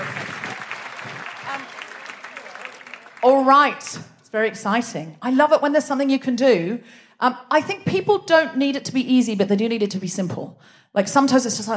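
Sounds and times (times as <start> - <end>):
audience clapping: 0.0 - 4.0
speech: 3.2 - 11.7.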